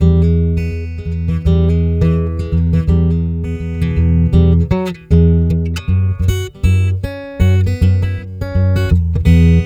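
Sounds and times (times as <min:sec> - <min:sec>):
piezo guitar filtered through effect: 0:00.0 - 0:09.6.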